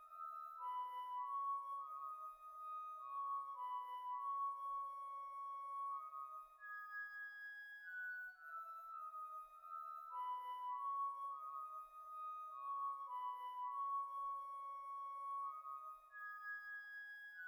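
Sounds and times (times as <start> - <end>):
flute solo: 0.2 - 17.4.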